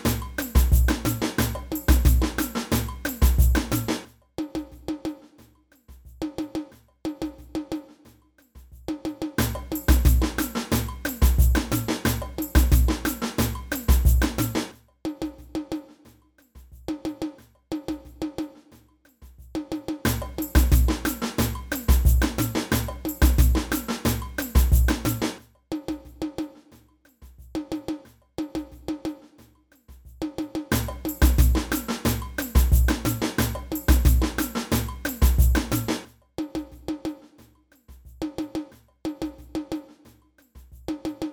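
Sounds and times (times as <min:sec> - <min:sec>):
samba band playing: 0:00.0 - 0:04.0, 0:09.4 - 0:14.7, 0:20.1 - 0:25.4, 0:30.7 - 0:36.1
repinique drum in samba band: 0:00.0 - 0:41.3.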